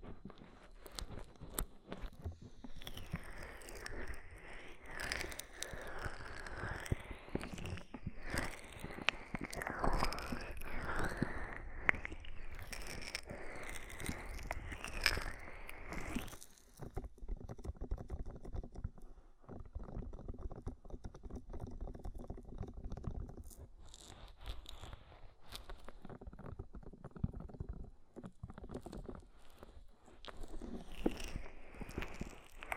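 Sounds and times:
oil and foam crackling and squishing over the ear: 0:00.4 - 0:32.7.

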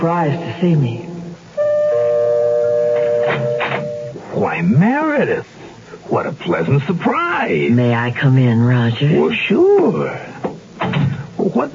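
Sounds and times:
speech: 0:00.0 - 0:01.1, 0:03.3 - 0:10.3, 0:11.4 - 0:11.7
doorbell ringing: 0:01.6 - 0:04.2.

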